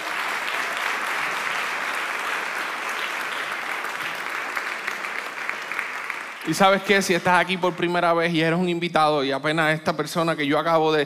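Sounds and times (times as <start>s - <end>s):
loud audience applause: 0.0s - 7.4s
speech: 6.5s - 11.0s.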